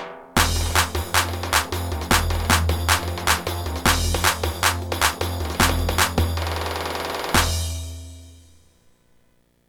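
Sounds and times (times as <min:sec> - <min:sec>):
Korg Pa 500 keyboard music: 0:00.4 - 0:07.9.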